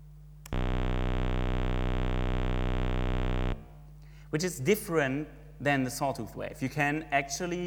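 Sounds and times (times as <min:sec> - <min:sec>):
square wave tone from a single bit of a digital output: 0:00.5 - 0:03.8
speech: 0:04.3 - 0:07.6.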